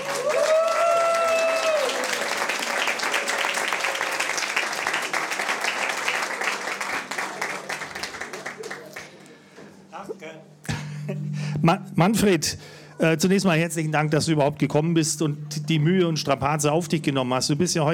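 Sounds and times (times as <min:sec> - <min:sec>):
audience applause: 0:00.0 - 0:09.4
speech: 0:11.6 - 0:17.9.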